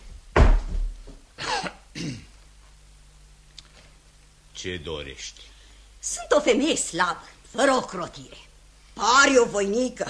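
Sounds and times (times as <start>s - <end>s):
door slamming shut: 0.3s - 1.0s
speech: 2.0s - 2.3s, 4.6s - 10.0s.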